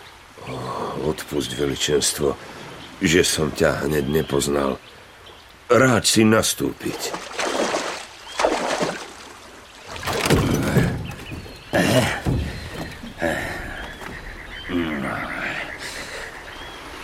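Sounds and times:
speech: 1.0s - 5.0s, 5.7s - 7.4s
wooden oars creaking and splashing in water: 6.8s - 16.8s
bubbly churning water: 7.0s - 11.7s
knocks: 10.0s - 14.2s.

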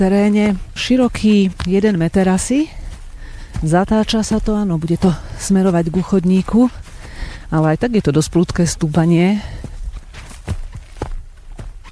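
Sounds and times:
speech: 0.0s - 2.8s, 3.6s - 9.7s
footsteps crunching on a narrow hillside trail: 0.0s - 11.9s.

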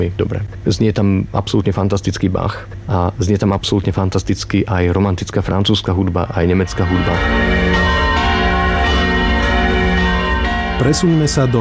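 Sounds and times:
speech: 0.0s - 7.6s, 10.8s - 11.5s
church bell ringing: 6.4s - 11.5s.

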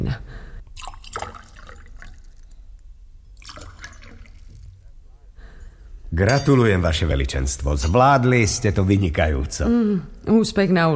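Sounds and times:
water pouring from a jug: 0.7s - 4.9s
speech: 6.2s - 10.9s.

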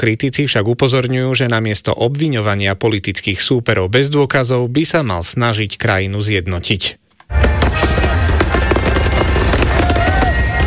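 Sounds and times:
speech: 0.0s - 7.5s
fireworks exploding: 7.3s - 10.6s.

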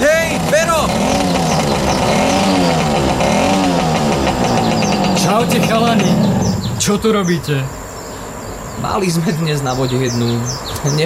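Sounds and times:
motorcycle engine revving: 0.0s - 7.5s
speech: 5.6s - 6.2s, 6.8s - 7.8s, 8.8s - 11.0s.

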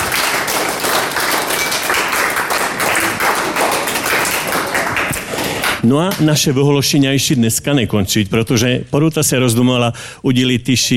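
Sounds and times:
audience applause at a school awards ceremony: 0.0s - 5.8s
speech: 5.8s - 10.9s.

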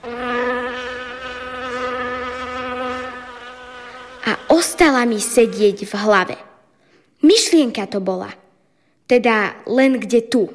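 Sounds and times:
fly buzzing: 0.0s - 6.1s
speech: 4.4s - 6.5s, 7.2s - 8.4s, 9.1s - 10.5s.

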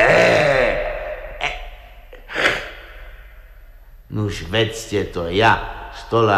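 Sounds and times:
person imitating a lion's roar: 0.0s - 1.6s
speech: 4.1s - 6.3s.

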